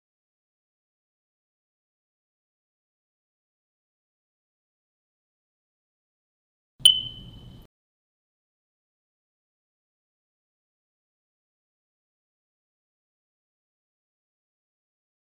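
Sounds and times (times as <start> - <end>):
low battery chirp: 6.8 - 7.7.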